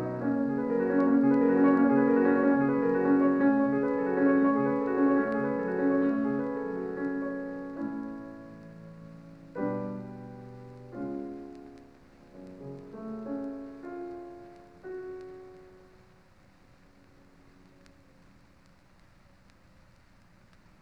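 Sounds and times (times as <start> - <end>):
prelude in F-sharp minor: 0.0 - 15.8.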